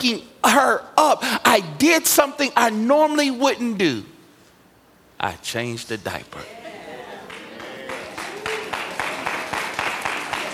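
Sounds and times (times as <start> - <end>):
speech: 0.0 - 4.1, 5.2 - 6.6
audience clapping: 7.1 - 10.5.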